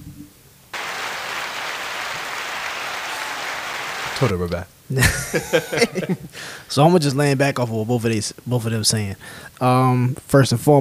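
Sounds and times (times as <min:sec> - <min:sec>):
audience applause: 0:00.8 - 0:04.4
speech: 0:04.2 - 0:10.7
laughter: 0:05.0 - 0:06.4.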